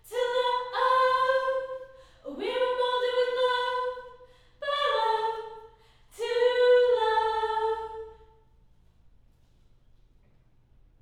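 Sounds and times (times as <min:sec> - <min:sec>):
choir singing high harmony: 0:00.1 - 0:08.2.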